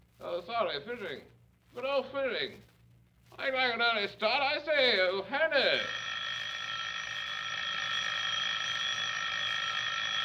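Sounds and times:
speech: 0.4 - 2.7, 3.3 - 6.0
telephone ringing: 5.6 - 10.2.

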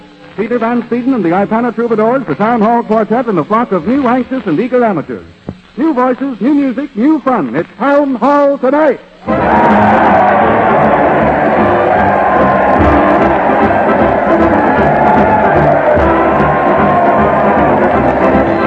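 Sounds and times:
speech: 0.4 - 10.5
crowd cheering in the streets: 9.2 - 18.6.

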